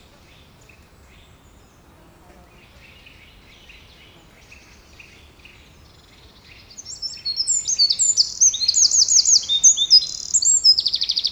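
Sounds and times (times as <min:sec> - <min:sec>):
Eurasian wren Troglodytes troglodytes trilling: 0:06.4 - 0:11.2.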